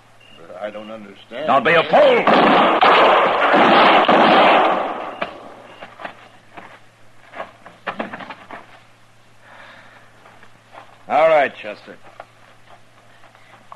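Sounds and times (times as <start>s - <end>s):
low steady hum: 0.0s - 13.7s
speech: 0.4s - 3.9s, 11.7s - 12.2s
gunshots in a radio drama western scene: 2.0s - 5.6s.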